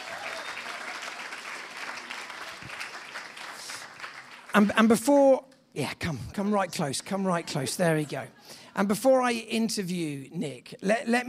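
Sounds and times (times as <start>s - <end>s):
audience applause: 0.0s - 4.7s
speech: 4.6s - 11.2s.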